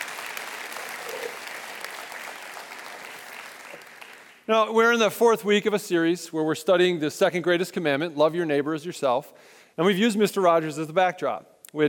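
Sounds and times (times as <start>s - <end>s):
audience applause: 0.0s - 4.5s
speech: 4.5s - 11.8s.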